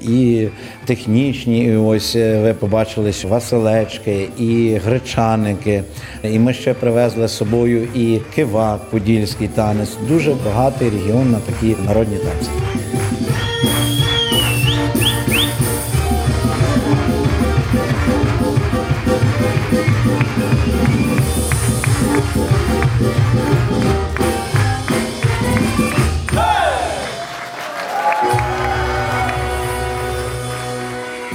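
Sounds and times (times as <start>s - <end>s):
speech: 0.0s - 13.8s
festival crowd clapping at the Pidlaska Osin festival: 6.3s - 31.3s
festival crowd cheering bravo for a Ukrainian folk dance ensemble: 10.3s - 31.3s.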